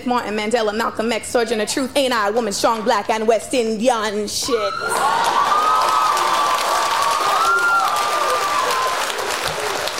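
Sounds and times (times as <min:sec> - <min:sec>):
speech: 0:00.0 - 0:05.5
audience clapping and cheering: 0:04.8 - 0:09.9.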